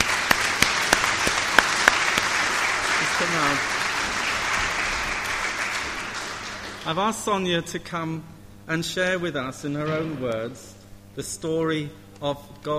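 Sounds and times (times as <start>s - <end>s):
audience applause: 0.0s - 7.2s
speech: 3.3s - 3.8s, 6.8s - 12.7s.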